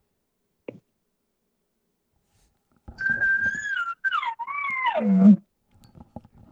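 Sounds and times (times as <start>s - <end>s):
soft bugle of a bedded bull elk: 3.0s - 5.4s.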